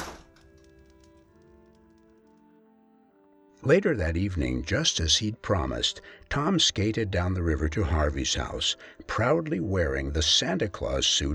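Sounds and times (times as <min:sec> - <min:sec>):
door closing: 0:00.0 - 0:00.4
speech: 0:03.6 - 0:11.3.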